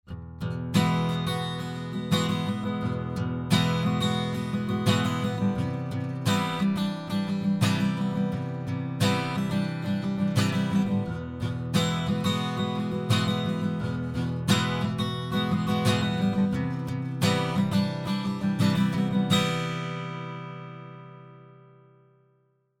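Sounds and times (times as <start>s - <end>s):
guitar: 0.0s - 22.7s.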